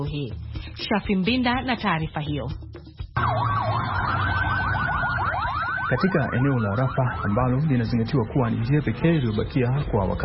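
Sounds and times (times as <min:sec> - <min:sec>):
speech: 0:00.0 - 0:02.6, 0:03.2 - 0:04.3, 0:05.9 - 0:10.2
ambulance siren at Rafah: 0:03.2 - 0:09.1.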